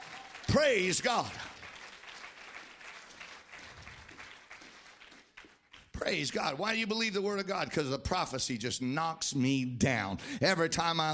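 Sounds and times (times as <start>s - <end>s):
audience clapping hands in a large room: 0.0s - 6.6s
speech: 0.6s - 1.5s, 6.1s - 11.1s.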